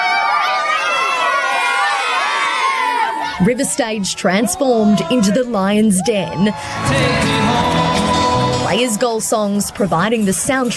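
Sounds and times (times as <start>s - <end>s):
huge crowd roaring and cheering at homecoming: 0.0s - 10.7s
speech: 3.4s - 10.7s.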